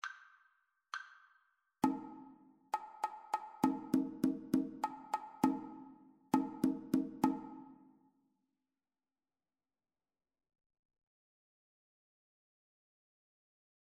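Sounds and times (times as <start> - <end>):
two-part rhythm: 1.8 - 7.7.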